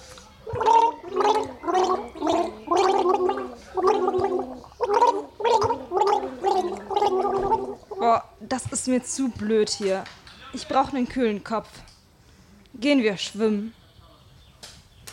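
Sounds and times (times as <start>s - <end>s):
warbling music sounding underwater: 0.0s - 8.2s
bubbly mid-pitched pulses: 0.4s - 8.2s
speech: 8.9s - 11.9s, 12.8s - 13.8s.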